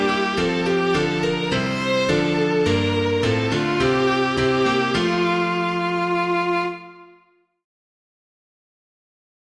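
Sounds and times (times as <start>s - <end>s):
piano: 0.0s - 7.5s.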